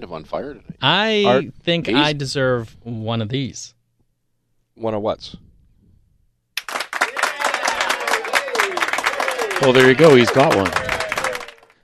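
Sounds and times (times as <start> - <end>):
speech: 0.0 - 3.8, 4.8 - 5.5, 9.6 - 10.9
canned studio audience applause: 6.6 - 11.8.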